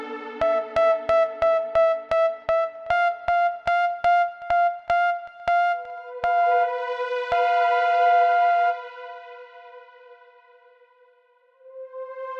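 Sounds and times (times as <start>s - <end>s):
rhythm: 0.5s - 9.2s.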